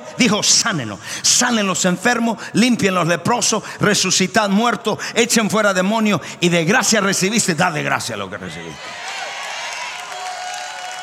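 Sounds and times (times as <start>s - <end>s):
speech: 0.2s - 9.1s
audience applause: 8.8s - 11.0s.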